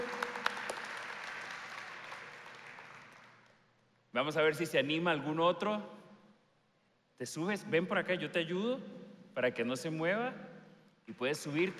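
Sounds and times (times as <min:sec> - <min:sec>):
audience applause: 0:00.0 - 0:03.4, 0:11.4 - 0:11.7
speech: 0:04.2 - 0:06.0, 0:07.2 - 0:10.5, 0:11.1 - 0:11.7.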